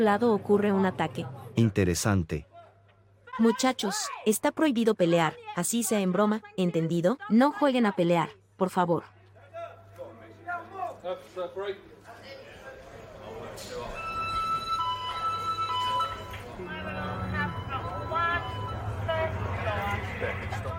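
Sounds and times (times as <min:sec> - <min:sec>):
speech: 0:00.0 - 0:02.5, 0:03.4 - 0:09.2, 0:11.0 - 0:11.9
fire alarm ringing in another cell block: 0:13.8 - 0:19.8.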